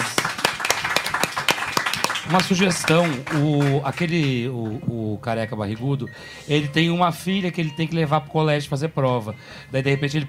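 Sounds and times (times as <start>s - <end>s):
audience applause of steady hand claps: 0.0s - 4.9s
speech: 2.3s - 10.2s.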